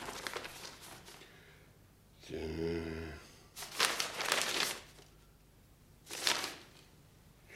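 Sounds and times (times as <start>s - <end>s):
paper mandates rustling as they are handled and shuffled: 0.0s - 1.3s, 3.6s - 5.2s, 6.1s - 6.9s.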